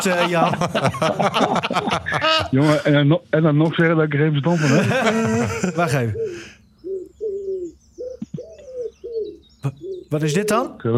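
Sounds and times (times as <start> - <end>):
laughter: 0.0 - 2.9, 4.5 - 6.5
speech: 0.0 - 6.5, 9.6 - 10.9
wood pigeon cooing: 5.7 - 10.8.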